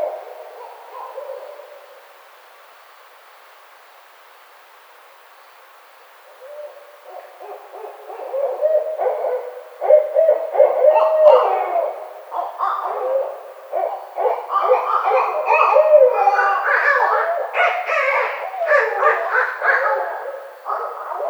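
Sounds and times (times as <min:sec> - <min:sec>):
barred owl hooting: 0:06.4 - 0:21.2.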